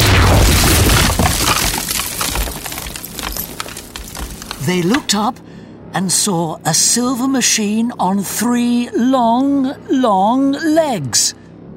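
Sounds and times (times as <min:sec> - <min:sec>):
breaking glassy fragments: 0:00.0 - 0:05.2
shattering crash of a beam of light smashing through a wall: 0:00.0 - 0:05.2
rumbling debris: 0:00.0 - 0:05.3
speech: 0:04.7 - 0:11.4.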